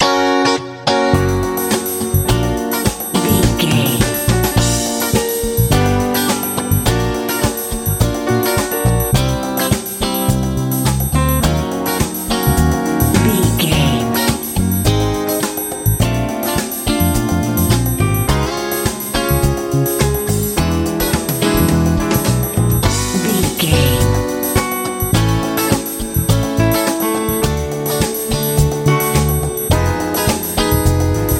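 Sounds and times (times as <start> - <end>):
R&B music: 0.9 - 31.3.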